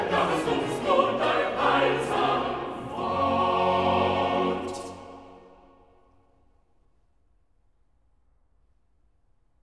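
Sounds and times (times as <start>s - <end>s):
chorus singing: 0.0s - 6.0s.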